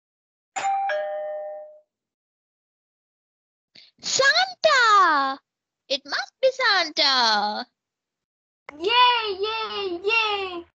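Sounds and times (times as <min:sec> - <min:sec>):
two-tone doorbell chime: 0:00.6 - 0:01.9
speech: 0:04.0 - 0:04.2, 0:05.2 - 0:07.8, 0:08.7 - 0:10.7.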